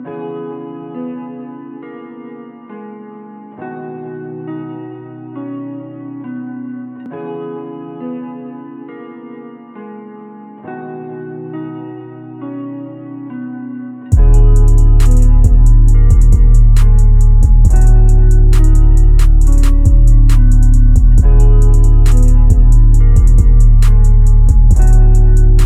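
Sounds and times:
bass boosted beats: 14.1 - 25.6.

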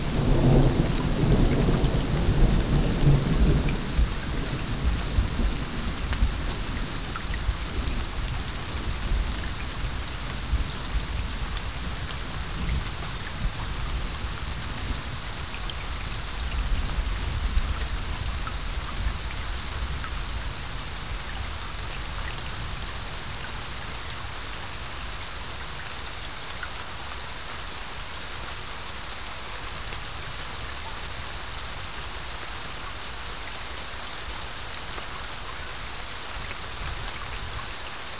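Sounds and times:
thunderstorm: 0.0 - 23.9.

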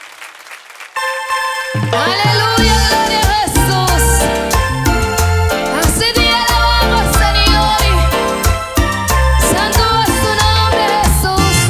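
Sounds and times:
church congregation clapping during a worship service: 0.0 - 1.8
sustained harmonic musical tone: 1.0 - 11.2.

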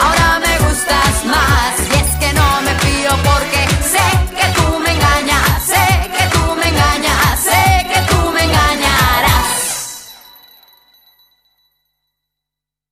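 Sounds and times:
music for rhythmic gymnastics: 0.0 - 9.5.

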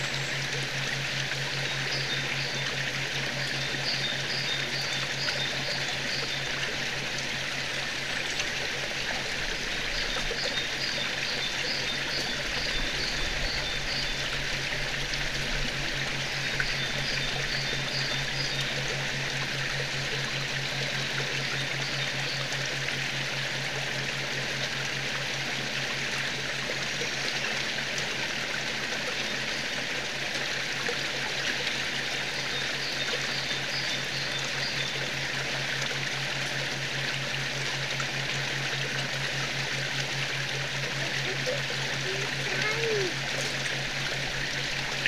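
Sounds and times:
birdsong: 0.0 - 22.8, 31.8 - 35.3, 40.5 - 45.0
runnel trickling: 0.0 - 45.0.

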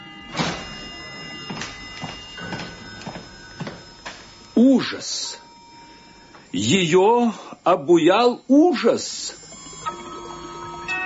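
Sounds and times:
front door being opened: 0.2 - 4.4
speech: 4.6 - 5.4, 6.5 - 9.4.

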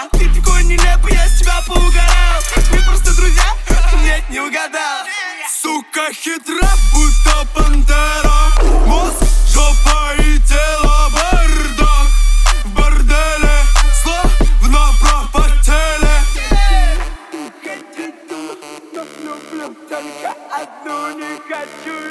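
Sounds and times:
35-37Hz low bass: 0.2 - 4.3, 6.7 - 17.2.

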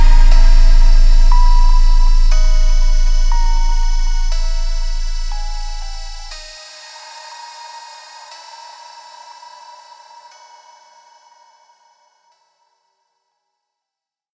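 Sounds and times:
26-29 Hz low bass tone: 0.0 - 6.3.

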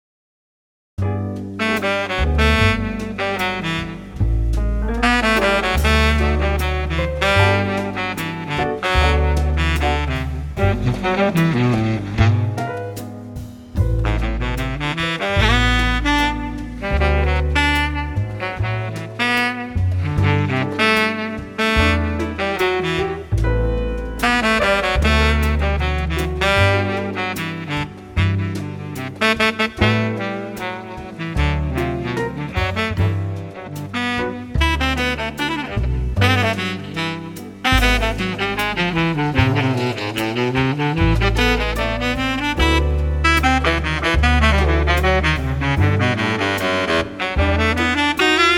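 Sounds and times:
jazz quartet playing in a hotel lounge: 1.0 - 48.5.

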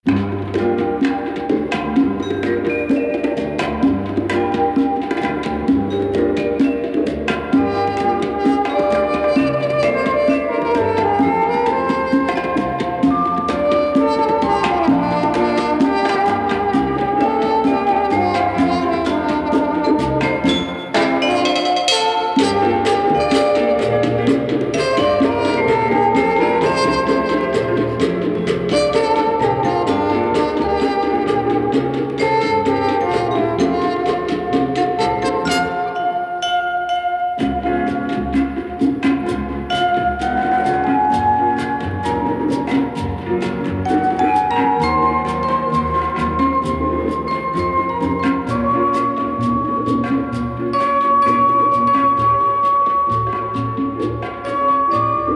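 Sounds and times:
carnival band playing mambo: 0.0 - 55.3.

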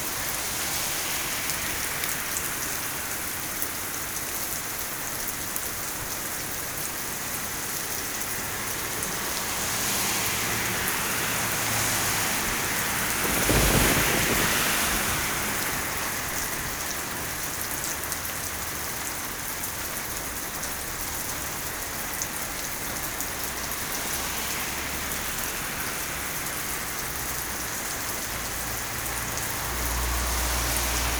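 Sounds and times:
rain: 0.0 - 31.1
thunder: 12.8 - 16.2.

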